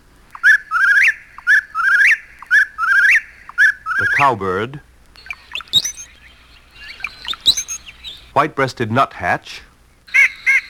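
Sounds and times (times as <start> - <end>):
Eastern whip-poor-will whistled song: 0.3 - 4.4, 5.2 - 8.4, 10.1 - 10.6
speech: 4.2 - 4.9, 8.4 - 9.7.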